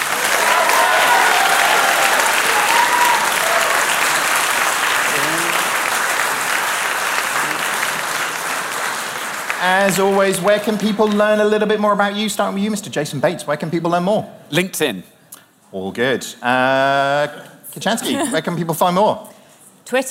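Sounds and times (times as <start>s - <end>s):
audience applause: 0.0s - 11.4s
speech: 9.7s - 19.3s, 19.9s - 20.0s.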